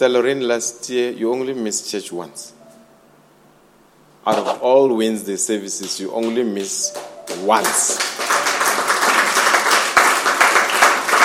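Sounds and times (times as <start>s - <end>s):
speech: 0.0s - 2.6s, 4.2s - 8.1s
audience clapping and applauding: 5.8s - 11.2s.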